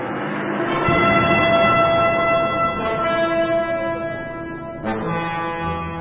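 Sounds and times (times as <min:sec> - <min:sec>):
trumpets blown by priests: 0:00.4 - 0:05.9.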